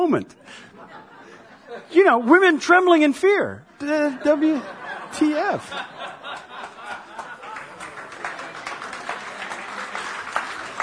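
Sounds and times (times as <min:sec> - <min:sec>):
speech: 0:00.1 - 0:00.8, 0:01.7 - 0:06.0
laughter: 0:00.4 - 0:02.6, 0:03.8 - 0:10.8
audience applause: 0:06.1 - 0:10.8.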